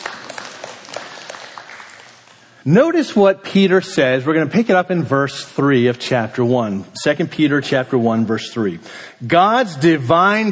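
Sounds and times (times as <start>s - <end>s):
audience clapping: 0.0s - 2.6s
speech: 2.6s - 10.5s.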